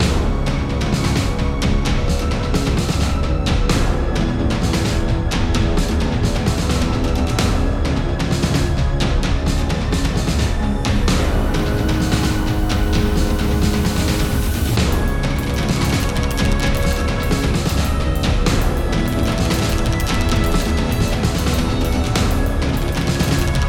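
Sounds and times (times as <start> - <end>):
metal music: 0.0 - 23.6.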